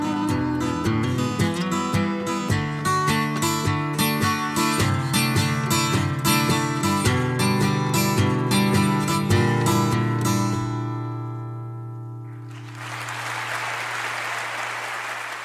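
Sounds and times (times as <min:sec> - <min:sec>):
strummed acoustic chords: 0:00.0 - 0:12.4
crowd applause at end of album track: 0:12.4 - 0:15.4.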